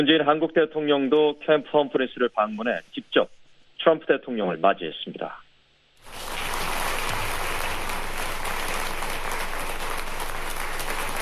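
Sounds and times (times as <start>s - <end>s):
speech: 0.0s - 5.4s
applause from a large crowd: 6.0s - 11.2s.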